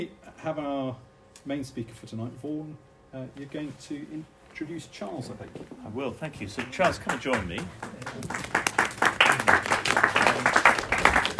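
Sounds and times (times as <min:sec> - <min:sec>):
speech: 0:00.0 - 0:08.6
audience applause: 0:06.5 - 0:11.3.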